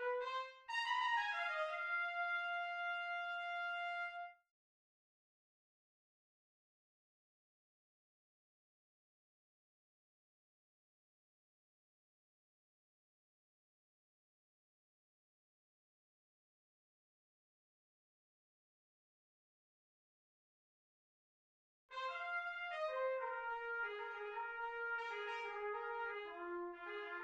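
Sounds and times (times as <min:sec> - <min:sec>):
trumpet in Bb: 0:00.0 - 0:04.4, 0:21.9 - 0:27.2.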